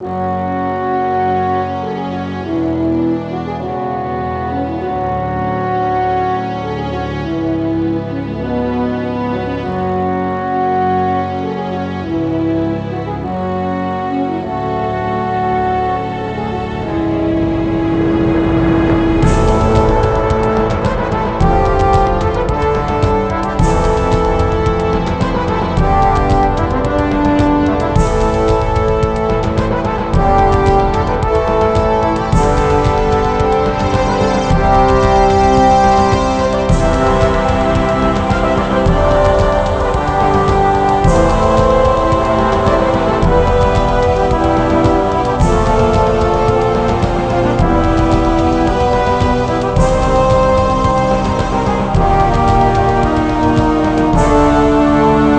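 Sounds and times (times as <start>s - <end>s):
music: 0.0s - 55.3s.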